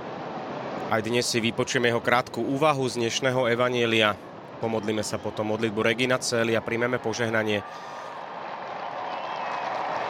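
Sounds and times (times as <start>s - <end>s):
speech: 0.8s - 8.0s
faithful and pilgrims applauding in the square during a prayer: 7.7s - 10.0s.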